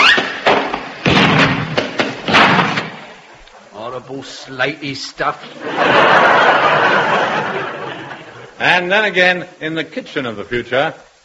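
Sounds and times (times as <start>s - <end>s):
heavy thuds and clatters of uranium fuel chucked onto a fire: 0.4s - 3.2s
speech: 4.1s - 7.8s, 8.6s - 11.1s
laughter: 5.4s - 8.6s.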